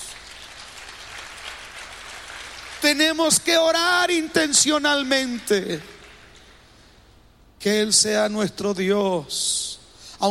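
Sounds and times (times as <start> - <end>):
church congregation applauding: 0.0 - 6.6
speech: 2.9 - 5.9, 7.6 - 10.3.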